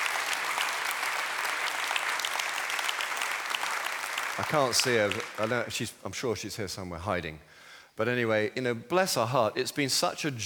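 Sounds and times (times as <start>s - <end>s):
audience applause: 0.0s - 5.8s
speech: 4.4s - 10.4s.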